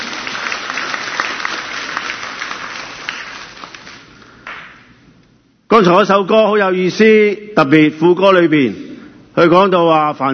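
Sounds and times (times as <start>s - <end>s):
audience applause: 0.0s - 4.6s
speech: 5.7s - 10.3s.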